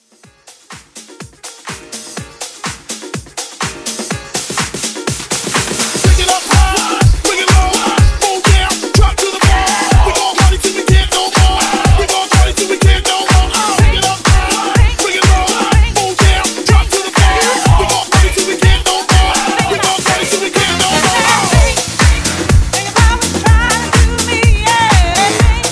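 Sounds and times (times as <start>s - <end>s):
house music: 0.0s - 25.6s.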